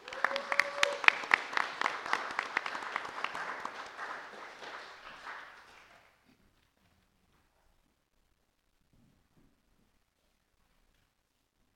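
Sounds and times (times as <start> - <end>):
audience applause: 0.0 - 6.1.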